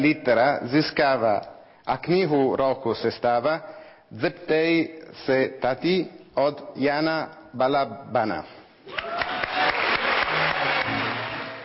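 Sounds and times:
speech: 0.0s - 9.2s
large crowd clapping in sustained ovation at award ceremony: 8.9s - 11.6s.

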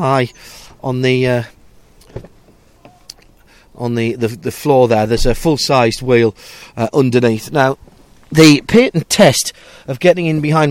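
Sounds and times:
speech: 0.0s - 2.3s, 3.8s - 10.6s
Jeep Cherokee tailgate closing with a dull thud: 2.0s - 3.0s.

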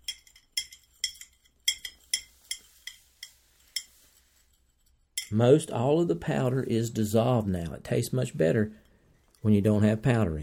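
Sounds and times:
spoon stirring a drink clinking against a cup: 0.0s - 5.4s
speech: 5.3s - 8.8s, 9.4s - 10.4s.

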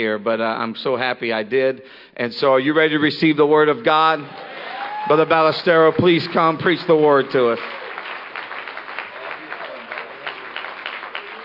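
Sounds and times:
speech: 0.0s - 7.8s
audience applause: 4.3s - 11.4s.

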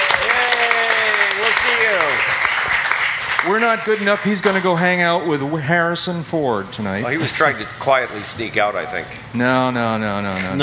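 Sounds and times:
round of applause: 0.0s - 4.8s
speech: 3.4s - 10.6s.

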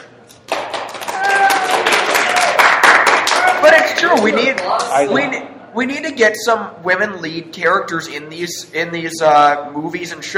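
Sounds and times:
group of people clapping: 0.0s - 5.1s
high whoops: 1.0s - 3.6s
speech: 4.0s - 10.3s.

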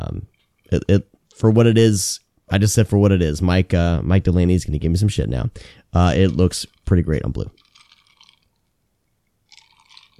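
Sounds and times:
speech: 0.2s - 7.6s
person sipping a drink: 7.5s - 8.6s, 9.5s - 10.1s.

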